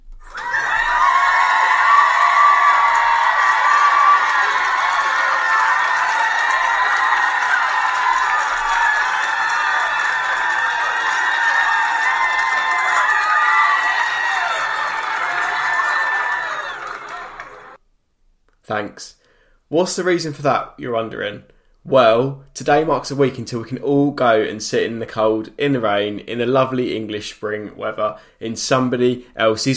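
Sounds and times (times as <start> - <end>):
crowd cheering and whooping: 0.2 - 17.8
speech: 19.0 - 29.7.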